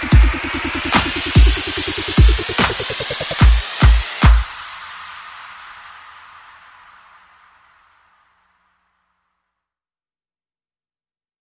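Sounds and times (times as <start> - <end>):
drums: 0.0 - 7.4.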